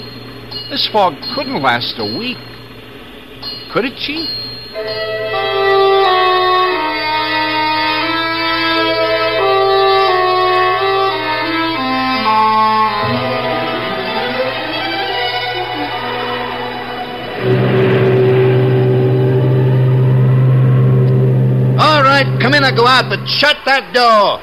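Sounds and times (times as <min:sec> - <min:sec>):
wavering tones shifting pitch: 0:00.0 - 0:23.6
speech: 0:00.7 - 0:02.5, 0:03.7 - 0:05.5, 0:22.2 - 0:24.4
foghorn blowing: 0:04.8 - 0:23.6.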